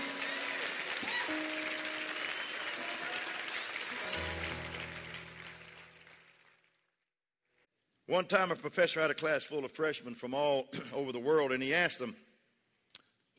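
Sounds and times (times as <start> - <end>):
audience clapping hands: 0.0 - 7.1
speech: 1.0 - 1.6, 8.1 - 12.3.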